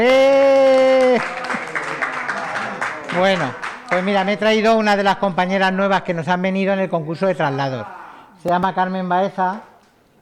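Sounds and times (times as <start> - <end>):
speech: 0.0 - 0.4, 3.2 - 9.7
applause: 0.2 - 4.6.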